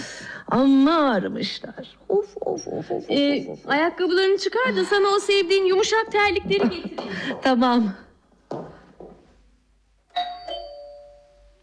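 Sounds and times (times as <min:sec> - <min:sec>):
speech: 0:00.5 - 0:08.0
doorbell ringing with a two-note ding-dong chime: 0:10.1 - 0:11.6.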